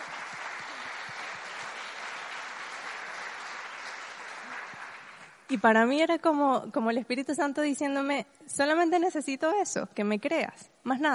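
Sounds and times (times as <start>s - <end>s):
audience applause: 0.0s - 5.4s
speech: 5.5s - 11.1s.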